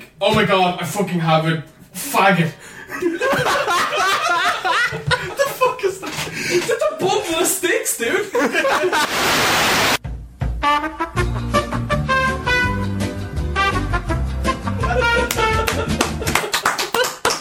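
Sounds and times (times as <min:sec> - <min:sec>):
speech: 0:00.2 - 0:04.1, 0:06.4 - 0:10.0
laughter: 0:02.9 - 0:07.3, 0:08.1 - 0:09.2, 0:14.7 - 0:17.3
upbeat music with thumping beat and bright melodic tones: 0:10.0 - 0:16.5
hand clapping: 0:15.2 - 0:17.3.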